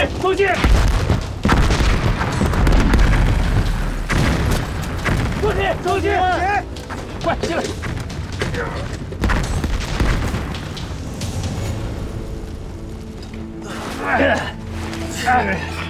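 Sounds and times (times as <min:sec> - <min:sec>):
speech: 0:00.0 - 0:00.9, 0:05.5 - 0:08.0, 0:08.6 - 0:09.0, 0:14.0 - 0:14.6, 0:15.3 - 0:15.8
bomb explosion booms: 0:00.6 - 0:05.8, 0:07.8 - 0:11.5.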